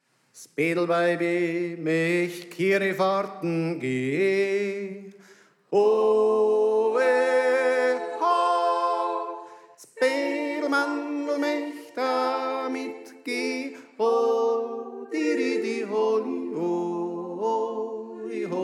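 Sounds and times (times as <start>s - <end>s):
tenor singing: 0.6s - 18.6s.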